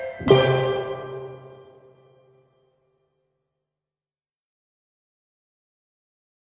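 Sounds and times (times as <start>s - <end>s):
staccato notes: 0.2s - 2.0s.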